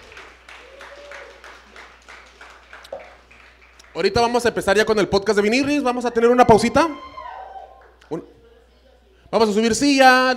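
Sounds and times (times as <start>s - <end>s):
audience applause: 0.0s - 4.8s
speech: 4.0s - 7.1s, 8.1s - 8.4s, 9.3s - 10.3s.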